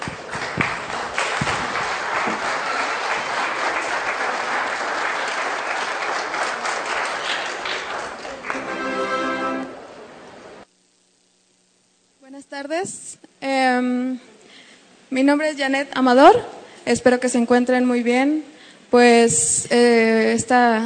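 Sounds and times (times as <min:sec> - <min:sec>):
audience applause: 0:00.0 - 0:09.7
speech: 0:12.7 - 0:13.0, 0:15.1 - 0:20.8.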